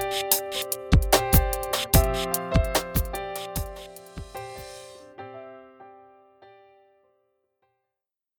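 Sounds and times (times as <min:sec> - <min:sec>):
pop music: 0:00.0 - 0:04.9.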